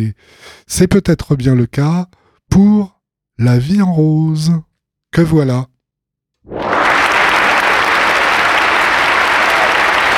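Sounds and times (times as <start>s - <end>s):
speech: 0.0s - 5.7s
real audience applause: 6.5s - 10.1s.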